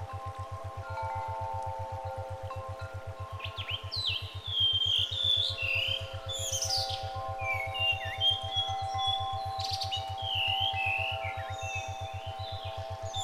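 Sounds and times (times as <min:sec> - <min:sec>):
brainwave therapy tones: 0:00.0 - 0:13.2.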